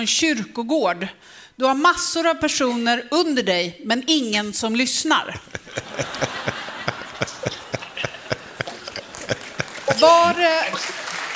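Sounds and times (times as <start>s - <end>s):
speech: 0.0s - 6.3s
laughter: 5.3s - 11.3s
applause: 7.2s - 11.3s.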